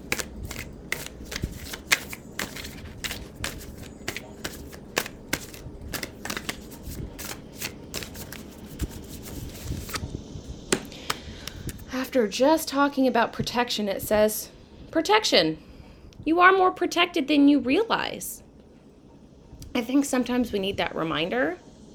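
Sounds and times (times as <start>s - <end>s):
tarot cards being shuffled and drawn during a reading: 0.0s - 10.1s, 10.7s - 12.0s
speech: 12.1s - 18.4s, 19.8s - 21.6s.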